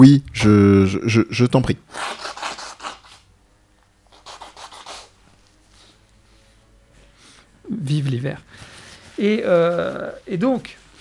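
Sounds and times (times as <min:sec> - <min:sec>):
speech: 0:00.0 - 0:02.4, 0:07.9 - 0:10.8
nose blowing into a tissue: 0:01.9 - 0:03.3, 0:04.1 - 0:07.5.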